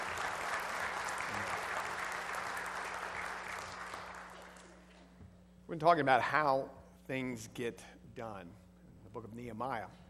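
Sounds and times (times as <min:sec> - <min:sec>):
audience applauding: 0:00.0 - 0:04.8
speech: 0:05.7 - 0:08.6, 0:09.2 - 0:10.0.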